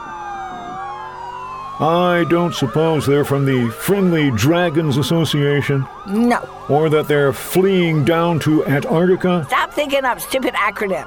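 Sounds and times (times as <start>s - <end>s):
wailing sirens of several pursuing vehicles: 0.0s - 11.0s
speech: 1.8s - 11.0s.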